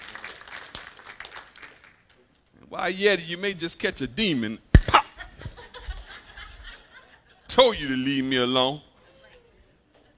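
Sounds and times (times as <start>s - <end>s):
audience clapping hands: 0.0s - 2.3s
speech: 2.7s - 4.7s, 7.6s - 8.9s
laughter: 4.8s - 7.8s.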